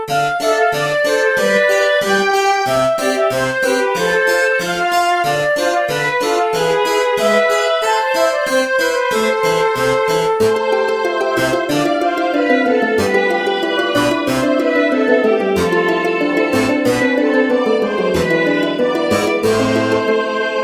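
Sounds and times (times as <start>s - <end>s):
sad town music: 0.1s - 20.6s.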